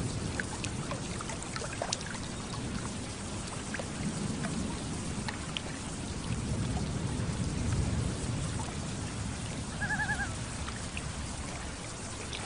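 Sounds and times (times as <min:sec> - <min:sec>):
rain over a lake in a thunderstorm: 0:00.0 - 0:12.4
thunder rumble over a lake: 0:00.0 - 0:12.4
wavering loon call: 0:09.8 - 0:10.4.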